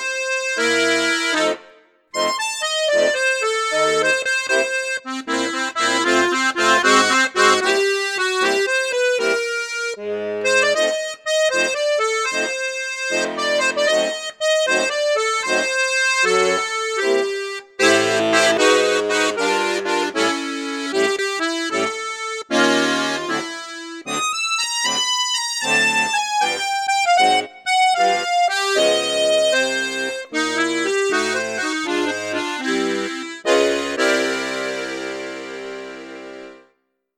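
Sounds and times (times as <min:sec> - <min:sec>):
accordion with bassoon and flute registers: 0:00.0 - 0:37.1.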